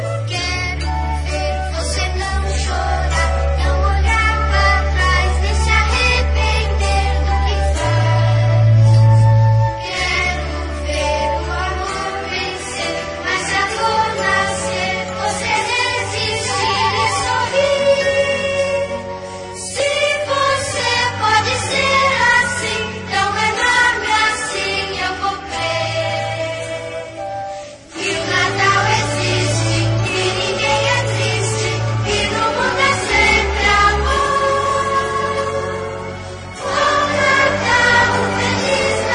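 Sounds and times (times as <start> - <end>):
children's choir singing: 0.1 - 39.1.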